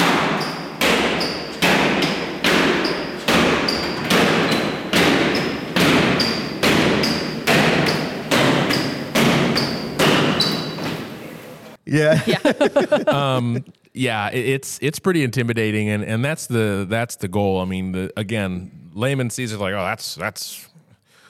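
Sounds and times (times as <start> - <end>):
group stomping in unison: 0.0 - 11.4
laughter: 11.9 - 13.7
speech: 11.9 - 20.7.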